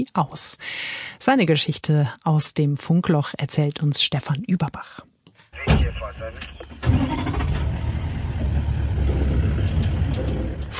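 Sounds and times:
speech: 0:00.0 - 0:07.6
safari jeep engine starting: 0:05.6 - 0:10.7.

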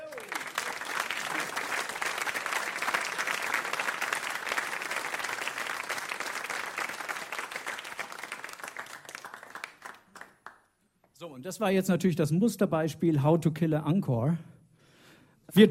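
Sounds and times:
large audience applause: 0:00.0 - 0:10.6
speech: 0:11.3 - 0:14.5.

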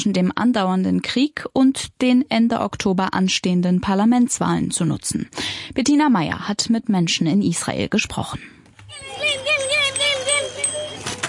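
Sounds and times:
speech: 0:00.0 - 0:09.6
children's voices: 0:08.8 - 0:11.2
children on bicycles ringing bells: 0:08.9 - 0:11.2.

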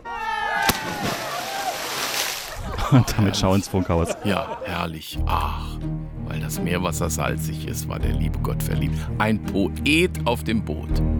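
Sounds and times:
cannonball dive splash into sea water: 0:00.6 - 0:02.6
laughter: 0:01.0 - 0:05.8
person saying goodbye: 0:02.9 - 0:03.6, 0:04.2 - 0:11.0
speech: 0:02.9 - 0:11.1.

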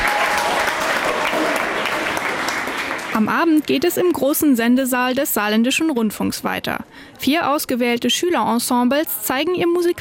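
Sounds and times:
audience applause: 0:00.0 - 0:03.9
speech: 0:03.2 - 0:10.0.

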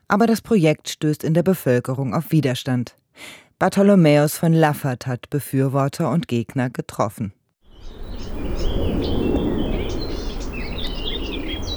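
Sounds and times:
speech: 0:00.1 - 0:08.0
birds chirping and whistling: 0:07.7 - 0:11.7
low rumble of wind in a meadow: 0:07.7 - 0:11.7.

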